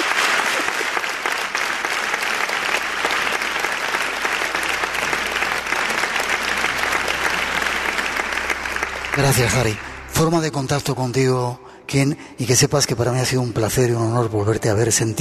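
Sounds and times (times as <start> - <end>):
audience applause: 0.0 - 10.5
speech: 9.2 - 15.1.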